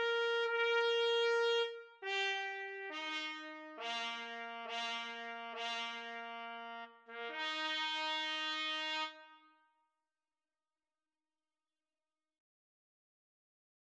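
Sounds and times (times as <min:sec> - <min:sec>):
cavalry trumpet call: 0:00.0 - 0:09.6.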